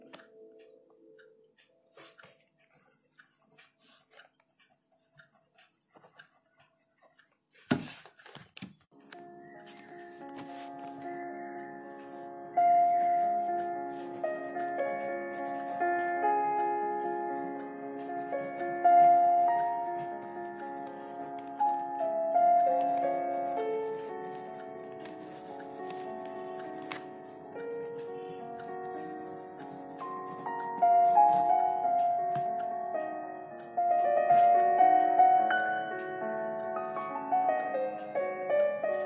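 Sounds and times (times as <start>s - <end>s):
slow moody dark academia music: 0.0s - 4.1s, 8.9s - 39.0s
ticking clock: 0.0s - 7.7s, 8.9s - 39.0s
soft pencil scratches: 2.0s - 8.4s, 9.7s - 11.1s, 11.9s - 21.6s, 22.5s - 31.7s, 34.3s - 34.6s.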